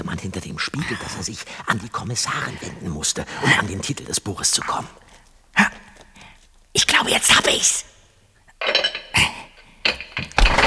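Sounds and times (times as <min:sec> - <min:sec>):
speech: 0:00.2 - 0:05.2, 0:07.0 - 0:07.9
loud metal door bolt sliding: 0:08.6 - 0:10.6.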